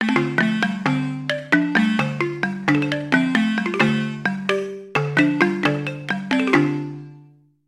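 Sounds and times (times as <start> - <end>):
balafon: 0.0 - 7.5.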